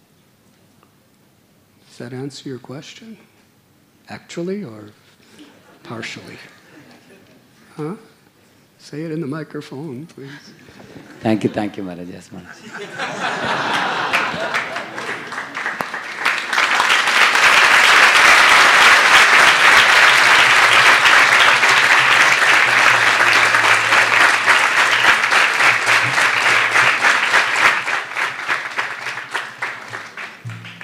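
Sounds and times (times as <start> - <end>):
speech: 2.0 - 3.3, 4.1 - 5.0, 5.8 - 6.6, 7.8 - 8.1, 8.8 - 13.8
laughter: 6.5 - 7.5, 10.5 - 15.8
crowd applause: 12.8 - 30.8.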